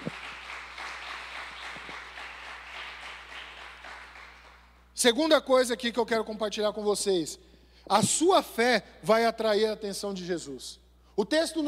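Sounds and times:
crowd applause: 0.0 - 4.7
speech: 5.0 - 11.6.

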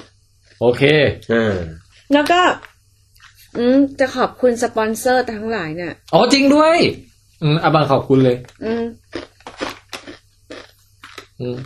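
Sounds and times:
person chewing food with moist crunchy bites: 0.0 - 3.5, 8.4 - 11.6
quiet low hum: 0.0 - 11.6
speech: 0.6 - 2.7, 3.6 - 9.3, 11.4 - 11.6.

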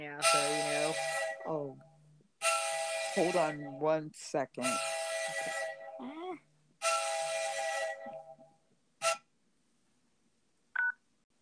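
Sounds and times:
speech: 0.2 - 1.6, 3.2 - 5.6
train coming through: 0.2 - 1.8, 2.4 - 5.9, 6.8 - 8.2.

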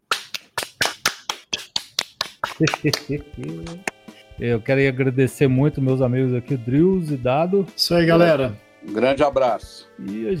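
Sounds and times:
hand clapping: 0.0 - 4.2
laughter: 2.5 - 3.8
speech: 2.6 - 10.3.

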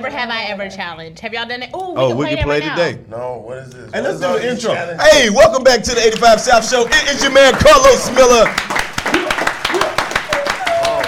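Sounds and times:
speech: 0.0 - 8.8
rapid hand clapping: 6.0 - 11.0.

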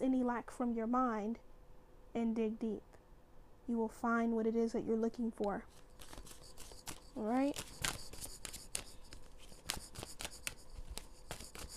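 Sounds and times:
speech: 0.1 - 1.5, 2.1 - 3.0, 3.7 - 6.3, 7.2 - 7.5
chakra oracle card deck shuffled by hand: 5.7 - 11.7.

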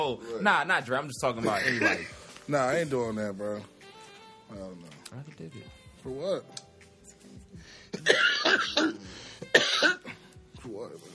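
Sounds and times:
speech: 0.0 - 3.8, 4.5 - 6.6, 7.9 - 10.0, 10.6 - 11.1
person coughing after smoking cannabis: 1.4 - 2.1, 8.0 - 10.2.

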